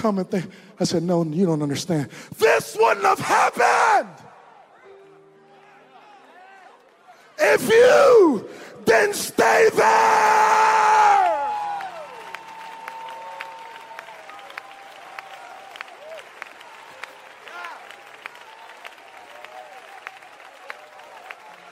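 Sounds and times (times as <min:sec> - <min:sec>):
speech: 0:00.0 - 0:04.3, 0:07.4 - 0:11.3
audience clapping: 0:10.8 - 0:21.7.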